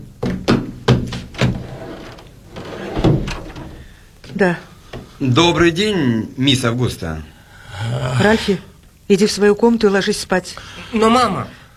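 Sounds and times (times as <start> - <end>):
heavy knocking on a wooden door: 0.1 - 1.6
speech: 4.4 - 11.6.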